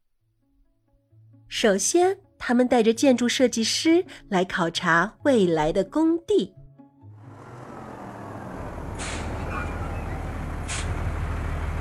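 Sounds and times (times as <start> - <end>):
speech: 1.5 - 6.6
trucks driving into a construction site: 7.1 - 11.8.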